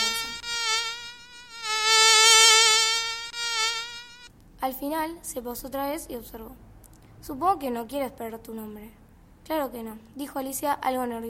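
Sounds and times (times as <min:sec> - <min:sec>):
mosquito buzzing with a high thin whine while circling: 0:00.0 - 0:04.3
speech: 0:04.7 - 0:11.2.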